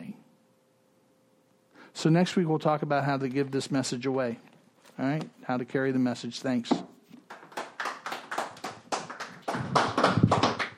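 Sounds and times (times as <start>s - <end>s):
speech: 2.0s - 6.9s
applause: 7.2s - 10.7s.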